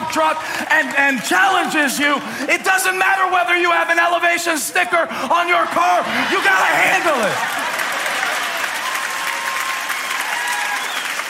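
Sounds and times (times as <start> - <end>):
audience clapping: 0.0 - 2.6, 6.3 - 11.2
speech: 0.1 - 7.7.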